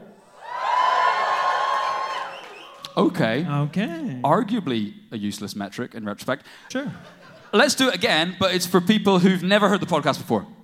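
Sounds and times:
crowd cheering and whooping: 0:00.0 - 0:03.4
speech: 0:03.0 - 0:10.6.

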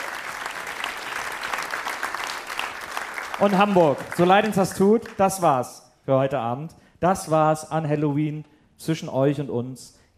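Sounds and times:
audience clapping: 0:00.0 - 0:05.6
speech: 0:03.4 - 0:10.1.

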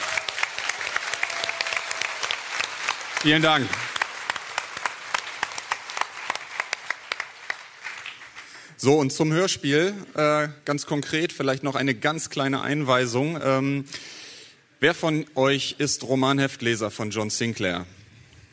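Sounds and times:
audience applause: 0:00.0 - 0:08.8
speech: 0:03.2 - 0:03.8, 0:08.8 - 0:14.2, 0:14.8 - 0:18.0.

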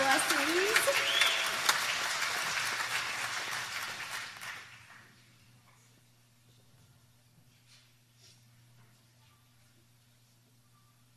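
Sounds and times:
audience applause: 0:00.0 - 0:05.2.

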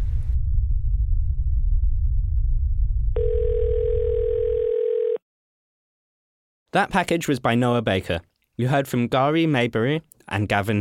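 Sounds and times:
low rumble: 0:00.0 - 0:03.4
phone alert electronic tone: 0:03.2 - 0:05.2
speech: 0:06.8 - 0:10.7.

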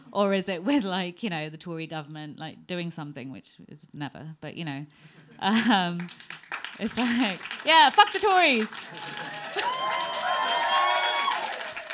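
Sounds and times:
speech: 0:00.1 - 0:10.0
scattered claps: 0:06.0 - 0:11.9
audience cheering: 0:06.9 - 0:11.9.

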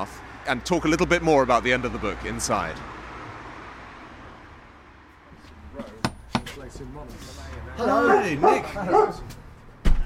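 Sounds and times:
speech: 0:00.0 - 0:03.0, 0:06.7 - 0:09.3
knocking on a cottage door: 0:06.0 - 0:06.6.

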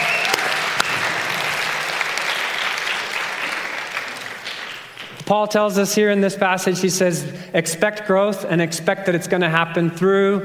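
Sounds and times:
audience applause: 0:00.0 - 0:05.2
speech: 0:05.3 - 0:10.4.

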